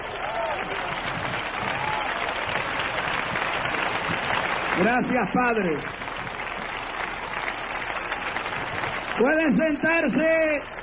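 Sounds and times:
audience applause: 0.0s - 10.8s
speech: 4.8s - 6.0s, 9.2s - 10.7s.

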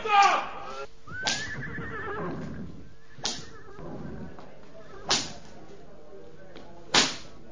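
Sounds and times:
voices: 0.0s - 7.4s
horse whinnying: 1.1s - 5.1s
whip cracks on horses: 1.2s - 1.5s, 3.2s - 3.5s, 5.1s - 5.4s, 6.9s - 7.4s.

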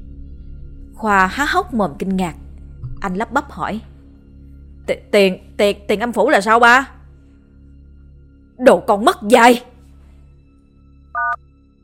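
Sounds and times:
speech: 1.0s - 2.4s, 3.0s - 3.9s, 4.9s - 7.0s, 8.6s - 9.7s
short electronic beep of a phone call hang-up: 11.2s - 11.4s.

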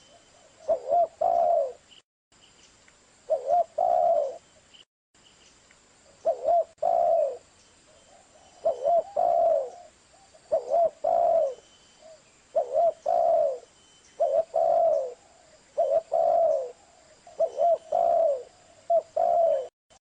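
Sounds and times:
spotted dove cooing: 0.0s - 1.8s, 3.3s - 4.4s, 6.2s - 7.4s, 8.1s - 19.7s.

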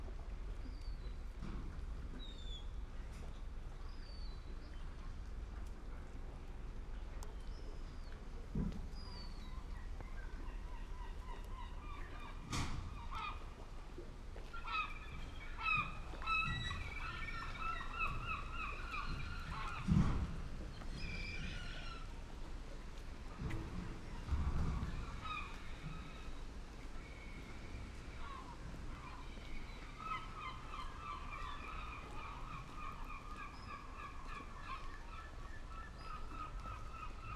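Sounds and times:
water lapping: 0.0s - 37.3s
gulls calling: 8.9s - 20.0s, 24.1s - 37.3s.

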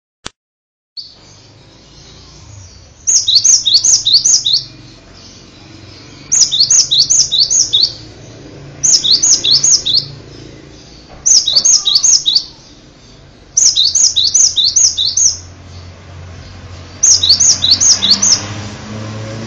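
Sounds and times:
bird song of downslurred whistles: 1.0s - 8.1s, 8.8s - 12.8s, 13.5s - 15.5s, 17.0s - 18.4s.

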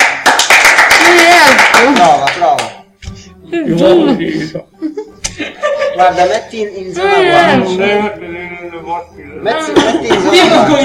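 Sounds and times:
loud hand clapping: 0.0s - 3.2s
laughter: 3.6s - 6.2s, 9.5s - 10.8s
speech: 3.7s - 4.8s, 6.0s - 10.8s.

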